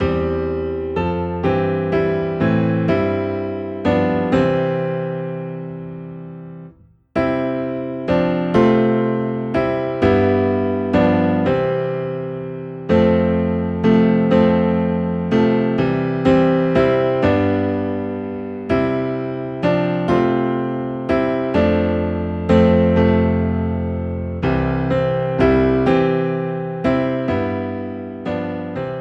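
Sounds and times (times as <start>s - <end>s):
low piano playing hymns in C: 0.0s - 28.9s.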